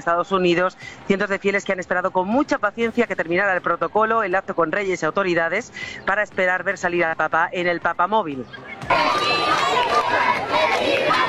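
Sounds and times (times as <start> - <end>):
speech: 0.0 - 11.0
large outdoor crowd cheering and whistling: 8.6 - 11.2
large outdoor crowd applauding: 8.9 - 11.2.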